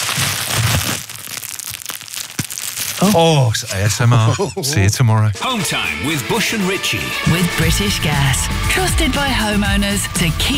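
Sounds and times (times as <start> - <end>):
bubble wrap being squeezed and popped: 0.0 - 3.6
speech: 3.0 - 10.5
laughter: 3.1 - 6.2.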